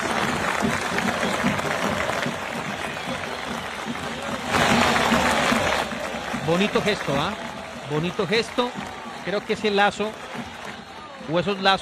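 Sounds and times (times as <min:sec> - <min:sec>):
large stadium crowd clapping: 0:00.0 - 0:11.8
speech: 0:06.5 - 0:10.5, 0:11.2 - 0:11.8.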